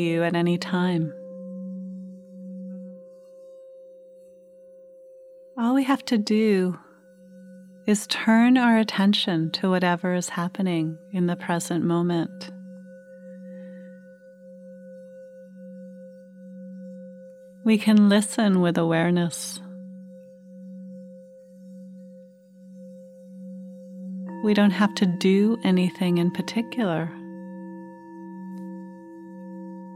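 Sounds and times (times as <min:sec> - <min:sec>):
speech: 0:00.0 - 0:01.2, 0:05.6 - 0:06.8, 0:07.9 - 0:12.6, 0:17.6 - 0:19.6, 0:24.4 - 0:27.2
mindfulness bells ringing: 0:24.3 - 0:29.9.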